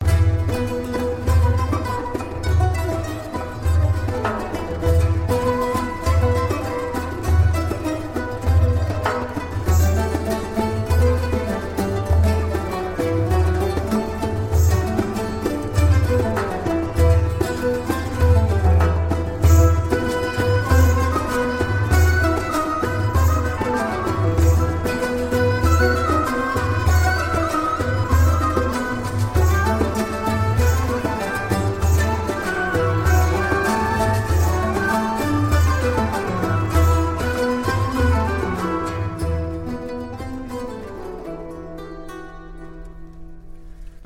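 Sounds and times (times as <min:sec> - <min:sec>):
Moroccan instrumental ghazal: 0:00.0 - 0:44.0.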